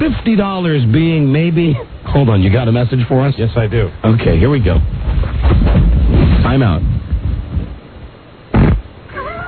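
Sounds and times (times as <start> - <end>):
speech: 0.0 - 5.8, 6.4 - 6.9
fart: 8.5 - 8.9.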